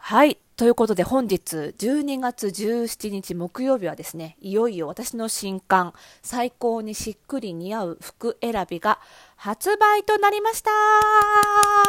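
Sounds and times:
speech: 0.1 - 11.8
person clapping hands: 11.0 - 11.8.

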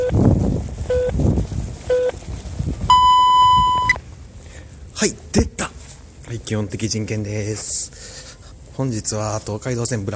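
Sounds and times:
low rumble: 0.0 - 10.1
telephone time signal beeps: 0.9 - 1.1, 1.9 - 2.1, 2.9 - 4.0
speech: 5.0 - 5.5, 6.3 - 8.2, 8.8 - 10.1.

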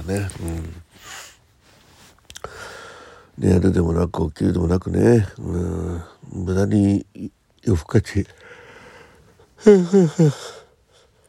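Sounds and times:
speech: 0.0 - 1.2, 3.4 - 8.6, 9.6 - 10.6
person yawning: 9.6 - 10.7.

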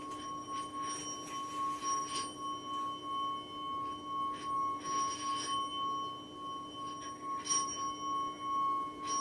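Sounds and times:
orin bowl bell struck and ringing: 0.0 - 9.2.

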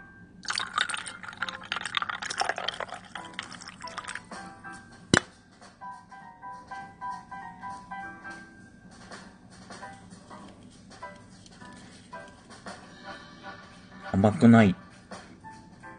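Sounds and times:
pouring the rest of a 350 ml can of Seiyu dry strong chuhai: 0.4 - 4.4
speech: 14.2 - 14.8.

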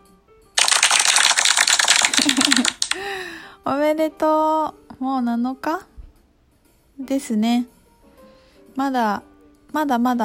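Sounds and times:
group clapping hands: 0.6 - 3.1
speech: 3.6 - 5.9, 7.0 - 7.7, 8.8 - 10.2.

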